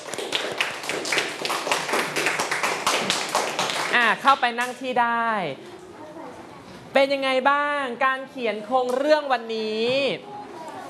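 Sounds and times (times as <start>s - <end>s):
classroom applause: 0.0s - 4.1s
speech: 4.1s - 5.7s, 7.0s - 10.3s.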